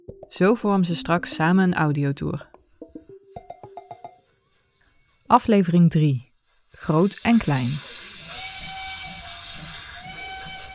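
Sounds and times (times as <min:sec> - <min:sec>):
speech: 0:00.3 - 0:02.5, 0:05.3 - 0:08.0
model steam locomotive steam hissing: 0:06.5 - 0:10.7
whistle of a small model steam locomotive about 20 cm long: 0:07.1 - 0:10.7.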